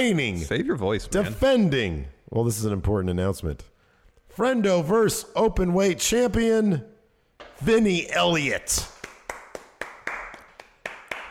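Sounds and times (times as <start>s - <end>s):
speech: 0.0s - 3.7s, 4.3s - 6.9s, 7.6s - 8.9s
loud sharp hand claps: 8.8s - 11.2s.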